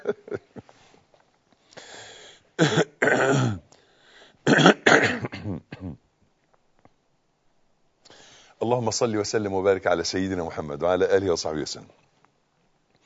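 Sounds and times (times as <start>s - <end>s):
speech: 2.6s - 2.9s, 8.8s - 12.0s
man coughing and clearing throat during a religious lecture: 2.6s - 3.7s, 4.5s - 6.0s.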